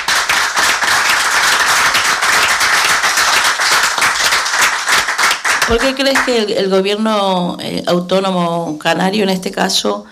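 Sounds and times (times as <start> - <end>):
audience applause: 0.0 - 6.3
speech: 5.7 - 10.0.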